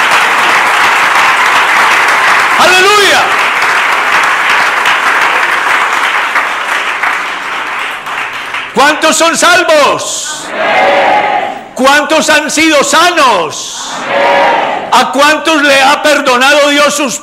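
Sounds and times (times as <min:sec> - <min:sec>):
audience applause: 0:00.0 - 0:08.8
speech: 0:08.8 - 0:11.0, 0:11.8 - 0:17.2.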